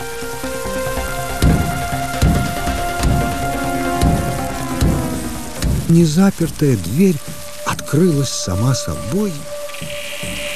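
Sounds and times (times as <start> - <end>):
heavy rain: 0.0 - 10.5
thunder: 0.8 - 7.9
speech: 5.9 - 9.9.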